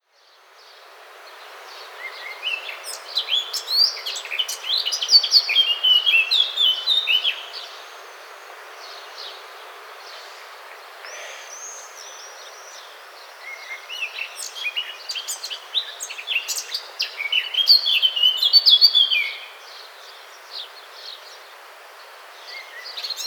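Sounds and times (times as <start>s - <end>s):
Eurasian blackcap song: 0.0s - 23.2s.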